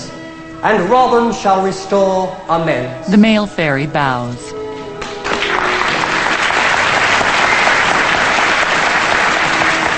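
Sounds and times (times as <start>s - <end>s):
speech: 0.6s - 4.6s
theatre audience applause: 5.0s - 9.9s.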